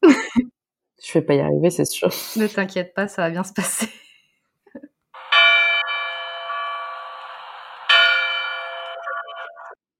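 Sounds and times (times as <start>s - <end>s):
speech: 1.1s - 4.0s
church bell tower clock chiming: 5.2s - 9.8s.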